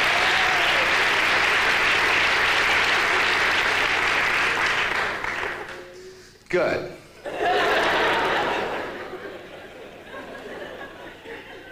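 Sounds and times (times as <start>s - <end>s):
audience applause: 0.0s - 5.8s
speech: 6.5s - 7.0s
laughter: 7.2s - 11.7s.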